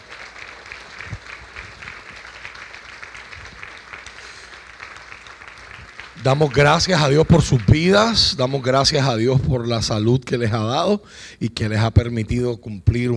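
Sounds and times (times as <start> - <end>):
crowd applause: 0.0 - 9.3
speech: 6.2 - 13.1.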